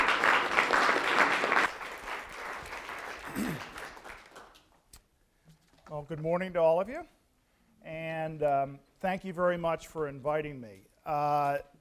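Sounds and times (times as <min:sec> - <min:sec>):
audience applause welcoming a speaker: 0:00.0 - 0:04.8
speech: 0:06.0 - 0:07.2, 0:07.9 - 0:11.7.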